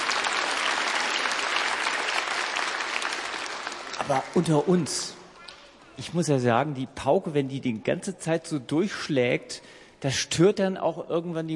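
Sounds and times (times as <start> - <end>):
audience applause: 0.0 - 5.1
speech: 4.0 - 5.2, 6.0 - 11.5.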